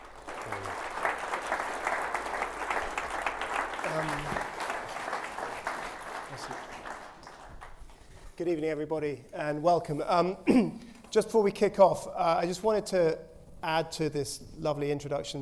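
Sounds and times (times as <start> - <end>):
audience applauding at a live book talk: 0.0 - 8.4
speech: 3.9 - 4.5, 8.4 - 15.4.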